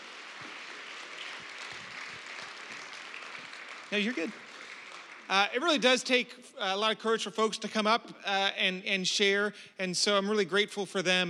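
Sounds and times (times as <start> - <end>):
crowd clapping: 0.0 - 6.2
speech: 3.9 - 4.5, 5.3 - 11.2.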